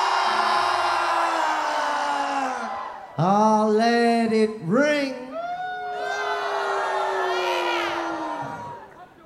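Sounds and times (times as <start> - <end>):
live concert crowd screaming at a festival in Rudolstadt: 0.0 - 3.4, 5.3 - 9.0
speech: 3.2 - 5.2.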